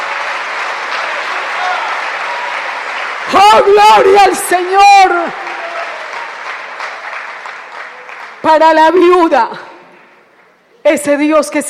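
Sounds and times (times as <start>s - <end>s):
audience applauding: 0.0s - 9.0s
speech: 3.3s - 5.5s, 8.4s - 9.7s, 10.8s - 11.6s.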